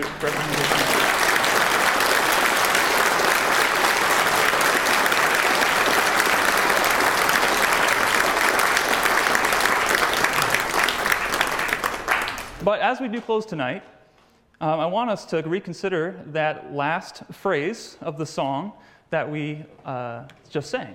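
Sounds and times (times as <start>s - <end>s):
large crowd applause: 0.0s - 12.6s
speech: 0.2s - 0.7s, 12.9s - 14.0s, 14.6s - 20.9s.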